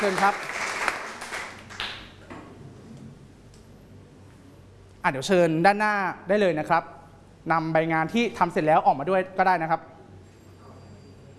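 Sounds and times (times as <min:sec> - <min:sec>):
speech: 0:00.0 - 0:00.7, 0:05.0 - 0:09.9
students applauding with soft scattered hand claps: 0:00.0 - 0:02.2.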